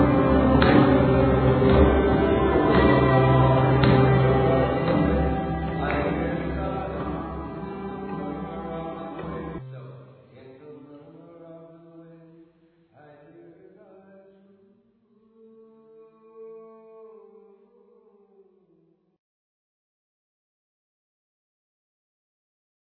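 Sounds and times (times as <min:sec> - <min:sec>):
qawwali music: 0:00.0 - 0:10.4.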